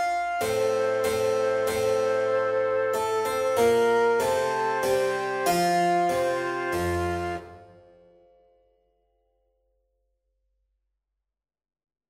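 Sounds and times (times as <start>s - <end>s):
slow minuet: 0.0s - 8.1s.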